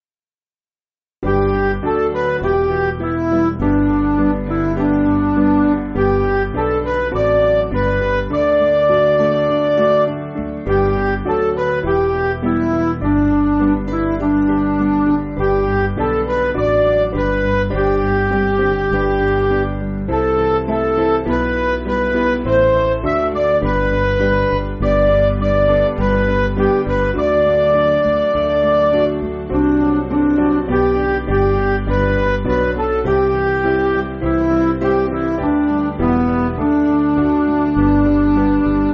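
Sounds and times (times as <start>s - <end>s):
MIDI music: 1.2s - 38.9s.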